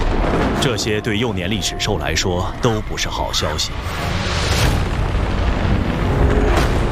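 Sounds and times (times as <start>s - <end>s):
thunder rumbling: 0.0s - 6.9s
speech: 0.6s - 4.8s.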